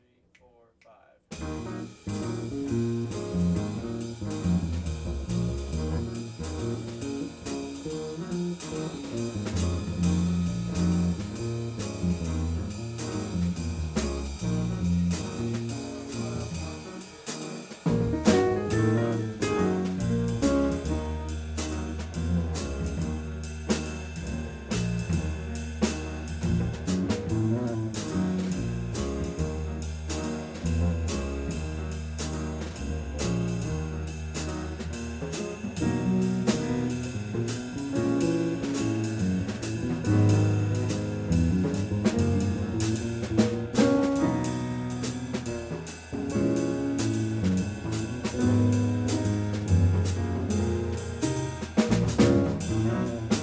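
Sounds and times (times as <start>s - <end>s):
jazz music: 1.3s - 53.4s.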